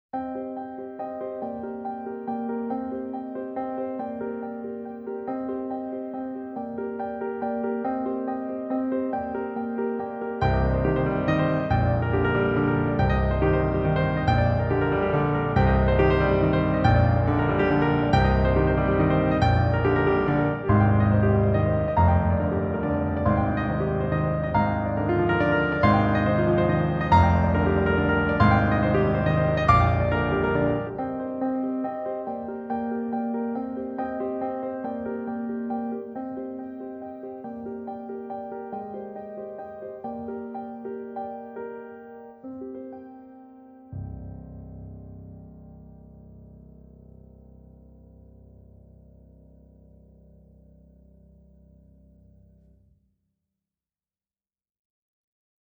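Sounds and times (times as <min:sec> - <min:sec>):
solo piano: 0:00.0 - 0:53.2.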